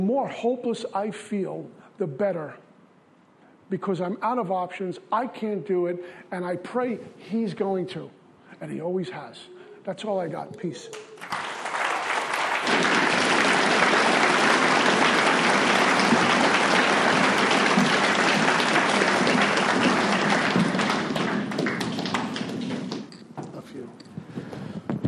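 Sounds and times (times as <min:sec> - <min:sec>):
speech: 0:00.0 - 0:02.7, 0:03.7 - 0:11.5
round of applause for speaker: 0:10.9 - 0:23.2.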